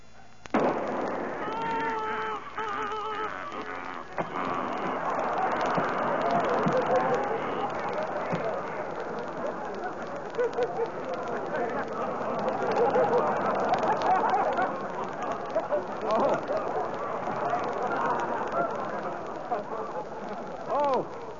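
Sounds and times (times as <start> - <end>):
gunshot fired at a flock of ducks: 0.5 - 1.3
laughter: 1.0 - 21.3.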